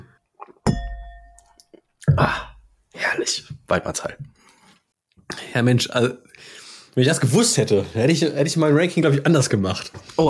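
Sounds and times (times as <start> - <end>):
glasses clinking in a toast: 0.6 - 1.6
speech: 2.2 - 2.5, 3.1 - 4.4, 5.3 - 10.2.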